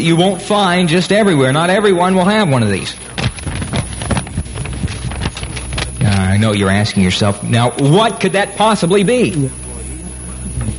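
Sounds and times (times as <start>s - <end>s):
speech: 0.0s - 3.2s, 6.4s - 9.6s
two sheets of paper being handled and flapped together: 2.7s - 6.5s.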